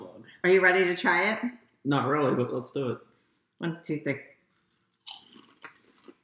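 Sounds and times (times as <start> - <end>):
speech: 0.4 - 4.3
chicken-flavored potato chips crunching: 4.6 - 6.2.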